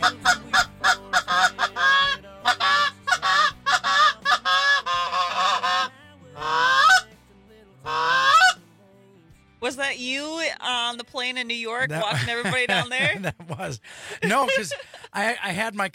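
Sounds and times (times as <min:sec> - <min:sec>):
flock of geese honking: 0:00.0 - 0:07.1, 0:07.8 - 0:08.6
speech: 0:11.4 - 0:15.9
laughter: 0:11.8 - 0:15.4.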